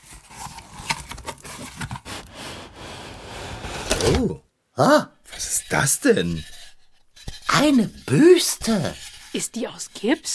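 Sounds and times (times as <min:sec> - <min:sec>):
cardboard gift box being opened: 0:00.0 - 0:04.4
speech: 0:04.0 - 0:06.6, 0:07.6 - 0:10.3.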